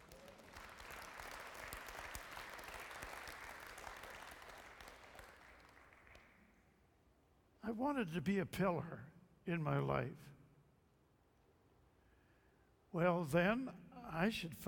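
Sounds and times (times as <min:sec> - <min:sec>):
audience applause: 0:00.0 - 0:06.3
speech: 0:07.7 - 0:10.4, 0:13.0 - 0:14.6.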